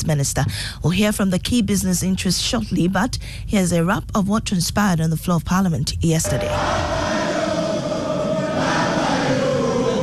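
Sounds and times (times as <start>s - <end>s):
speech: 0.0s - 7.1s
parliament members jeering and cheering after the finance minister's 2024 budget: 6.2s - 10.0s.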